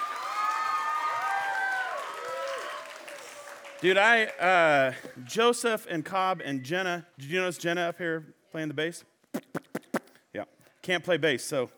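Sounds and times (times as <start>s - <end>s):
whoops and shouts: 0.0s - 3.5s
audience applause: 0.0s - 5.2s
speech: 3.8s - 9.1s, 10.4s - 11.7s.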